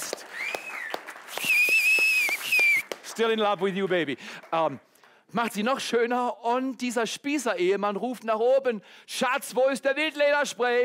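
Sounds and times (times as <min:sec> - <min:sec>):
audience applause: 0:00.0 - 0:05.2
whistling: 0:00.2 - 0:03.0
speech: 0:03.2 - 0:10.8.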